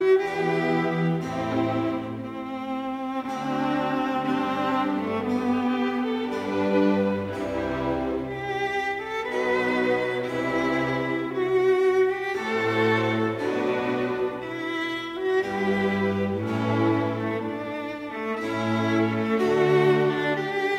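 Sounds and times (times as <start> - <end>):
viola concerto with string orchestra in G major largo: 0.0 - 20.7.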